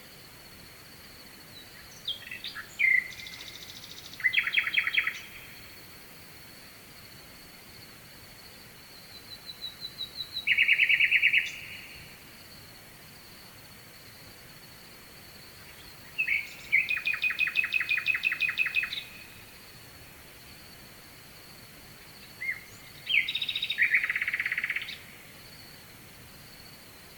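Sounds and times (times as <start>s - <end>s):
hiss: 0.0s - 27.1s
nightingale singing: 1.5s - 5.7s, 9.0s - 12.2s, 15.6s - 19.6s, 22.2s - 25.3s.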